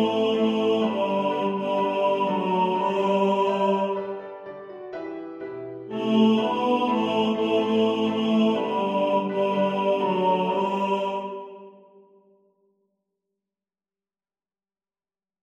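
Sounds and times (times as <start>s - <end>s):
tenor singing in the foreground: 0.0s - 4.6s, 5.9s - 11.9s
piano: 0.0s - 11.8s.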